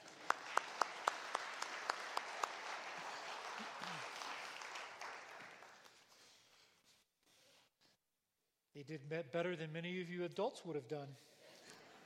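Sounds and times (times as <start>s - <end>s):
audience applause: 0.0s - 6.0s
speech: 8.8s - 11.3s.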